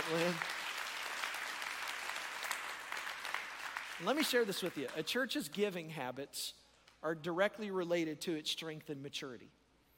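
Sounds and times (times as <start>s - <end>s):
audience clapping hands: 0.0s - 5.6s
speech: 0.1s - 0.6s, 4.0s - 9.6s.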